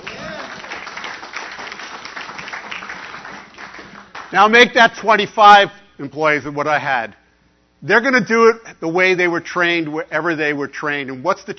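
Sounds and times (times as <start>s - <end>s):
audience applause: 0.0s - 4.4s
speech: 4.3s - 7.2s, 7.8s - 11.5s.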